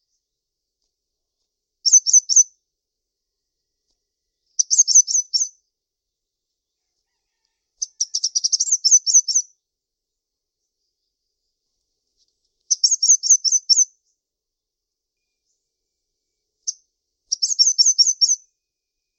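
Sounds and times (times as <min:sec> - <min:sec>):
bird chirping in short high sharp notes: 0:01.8 - 0:02.6, 0:04.2 - 0:14.3, 0:15.0 - 0:19.1.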